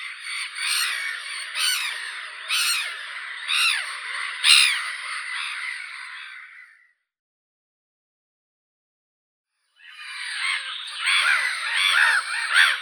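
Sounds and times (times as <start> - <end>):
black-headed gull Larus ridibundus: 0.0 - 6.6, 9.8 - 12.8.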